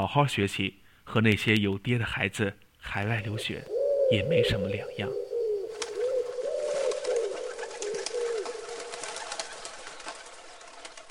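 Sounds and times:
speech: 0.0s - 5.2s
steady hiss: 2.5s - 9.8s
pigeon cooing: 3.0s - 9.8s.

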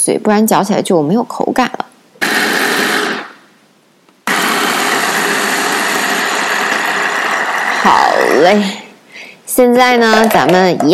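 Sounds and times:
speech: 0.0s - 1.8s, 7.8s - 8.8s, 9.6s - 10.9s
blender briefly pulsing: 2.2s - 3.4s, 4.2s - 8.8s.

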